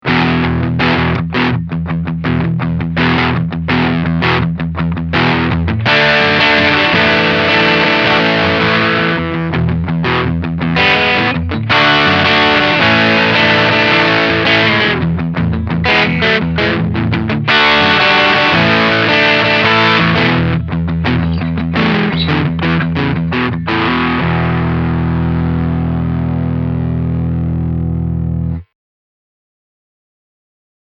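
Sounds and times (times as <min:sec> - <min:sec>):
overdriven guitar: 0:00.0 - 0:28.7.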